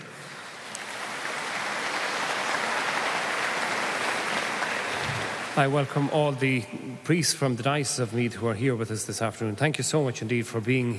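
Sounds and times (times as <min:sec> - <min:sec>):
round of applause for visiting priests from the Diocese of Meath: 0:00.0 - 0:06.4
speech: 0:05.6 - 0:10.9.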